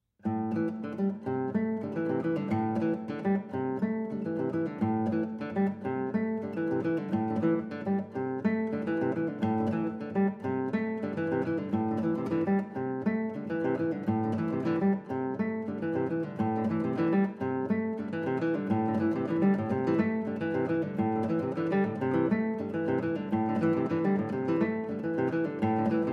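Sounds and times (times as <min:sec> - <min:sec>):
guitars: 0:00.2 - 0:26.1.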